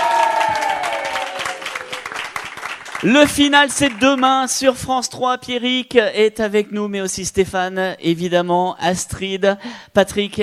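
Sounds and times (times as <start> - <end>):
audience applauding: 0.0 - 4.6
speech: 3.0 - 10.4.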